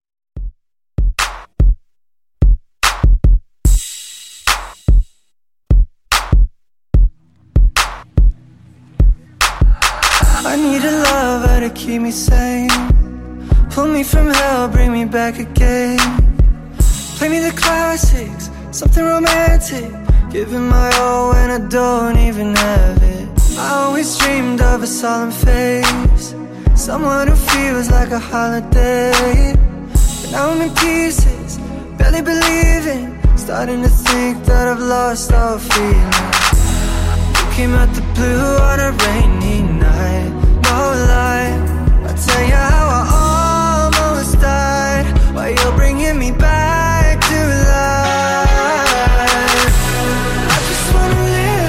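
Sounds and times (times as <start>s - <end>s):
slow jam drums: 0.4s - 8.4s, 9.0s - 11.7s, 12.3s - 15.0s, 15.6s - 21.6s, 22.2s - 24.8s, 25.4s - 34.7s, 35.3s - 51.6s.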